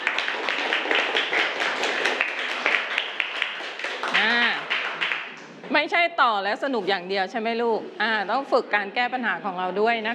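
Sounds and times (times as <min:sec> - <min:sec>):
classroom applause for a group: 0:00.0 - 0:05.5
speech: 0:05.8 - 0:10.1.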